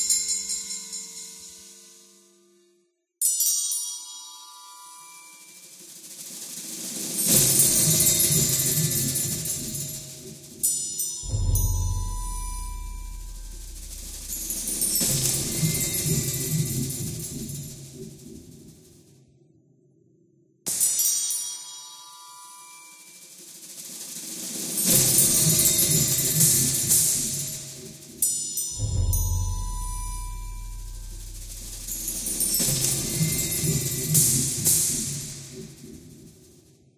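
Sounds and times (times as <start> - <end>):
ambience: 7.2 - 19.0, 24.8 - 36.6.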